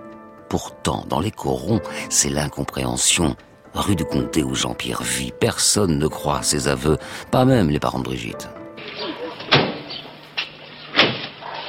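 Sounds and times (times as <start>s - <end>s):
speech: 0.5s - 9.1s
door banging shut: 8.8s - 11.6s.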